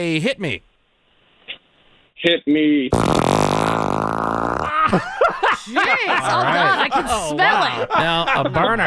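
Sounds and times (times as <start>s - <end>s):
speech: 0.0s - 0.7s, 2.2s - 3.3s, 4.0s - 8.8s
fart: 2.9s - 4.9s
laughter: 4.7s - 8.8s.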